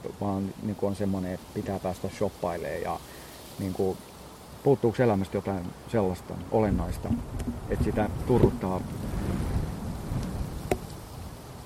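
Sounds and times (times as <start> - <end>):
speech: 0.2 - 9.1
strong wind blowing outdoors: 6.6 - 11.6
sharp knock: 7.0 - 7.6.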